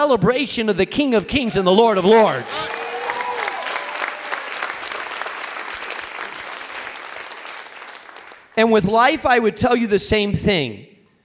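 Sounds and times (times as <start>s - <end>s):
speech: 0.0s - 2.8s, 8.6s - 10.9s
audience clapping: 2.0s - 8.7s.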